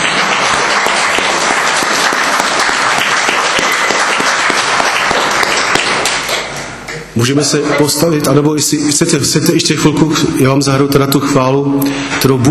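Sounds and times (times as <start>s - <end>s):
audience applause: 0.0s - 6.9s
speech: 7.2s - 12.5s.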